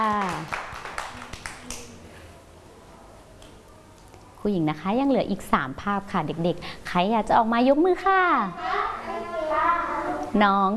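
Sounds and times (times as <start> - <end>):
children clapping: 0.0 - 2.0
speech: 4.4 - 8.8, 10.3 - 10.7.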